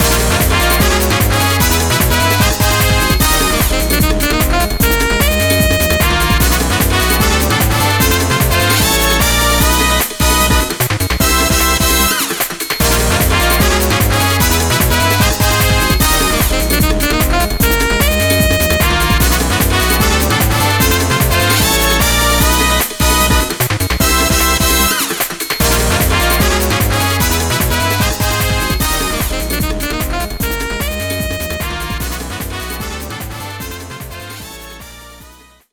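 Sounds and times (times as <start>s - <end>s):
course intro music: 0.0s - 35.4s.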